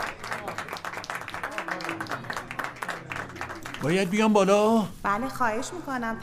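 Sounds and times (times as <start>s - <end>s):
audience applause: 0.0s - 4.4s
speech: 3.8s - 6.2s.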